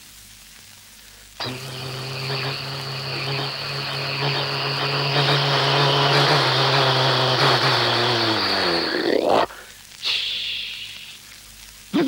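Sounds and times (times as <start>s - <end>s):
short hiss of London Underground train: 0.8s - 11.9s
London Underground train rumbling and braking to a halt: 1.4s - 9.2s.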